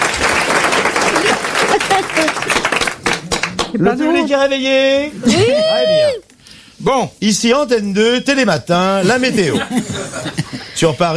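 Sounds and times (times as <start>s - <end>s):
crowd applauding: 0.0s - 3.9s
laughter: 1.1s - 2.5s, 9.0s - 11.0s
speech: 3.7s - 11.1s.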